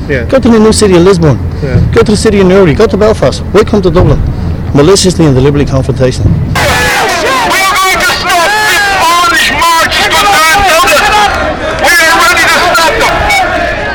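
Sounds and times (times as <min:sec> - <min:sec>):
speech: 0:00.1 - 0:06.6
large crowd gathered before rioting: 0:06.5 - 0:13.9.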